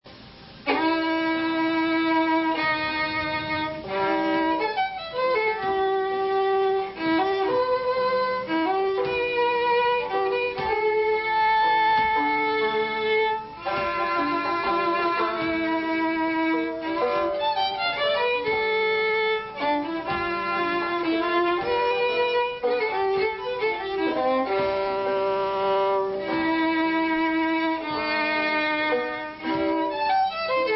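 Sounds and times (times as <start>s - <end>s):
waltz music: 0.5s - 30.7s.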